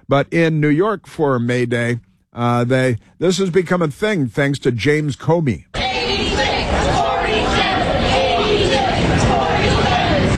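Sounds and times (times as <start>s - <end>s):
speech: 0.1s - 5.7s
crowd chanting at a protest in New York: 5.7s - 10.3s.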